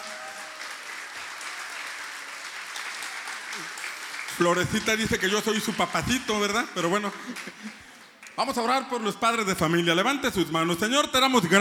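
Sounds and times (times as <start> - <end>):
audience applause: 0.0 - 6.2, 6.9 - 8.4
speech: 4.4 - 11.5.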